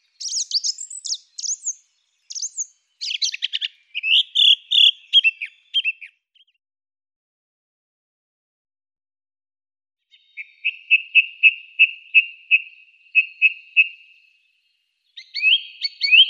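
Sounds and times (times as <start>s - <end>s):
song thrush singing loud varied phrases: 0.0s - 6.6s, 10.1s - 16.2s.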